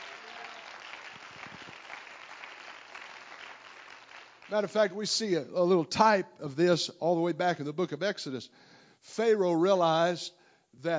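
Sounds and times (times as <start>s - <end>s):
crowd clapping: 0.0s - 5.0s
speech: 4.5s - 10.9s.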